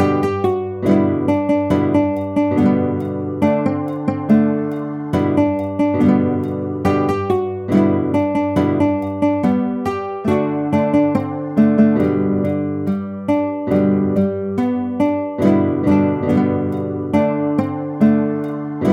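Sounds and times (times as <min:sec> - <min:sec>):
guitar playing: 0:00.0 - 0:18.9.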